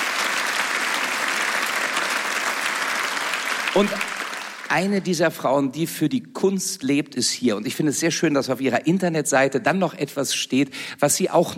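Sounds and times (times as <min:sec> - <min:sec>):
audience applause: 0:00.0 - 0:04.9
speech: 0:03.7 - 0:11.5.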